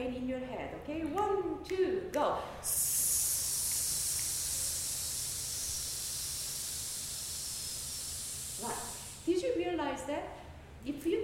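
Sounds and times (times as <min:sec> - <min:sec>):
speech: 0:00.0 - 0:02.8, 0:09.7 - 0:11.2
breathy vocal hiss in a breathing exercise: 0:02.5 - 0:09.5.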